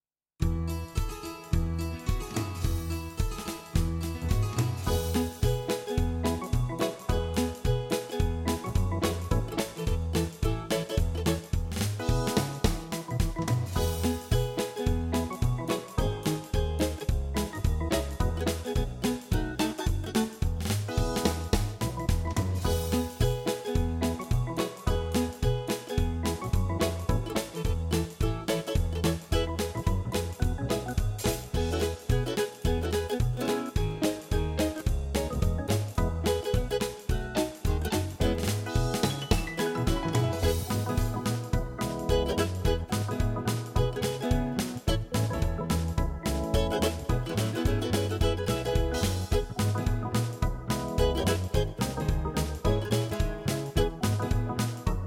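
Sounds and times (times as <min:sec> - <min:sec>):
music: 0:00.4 - 0:55.0.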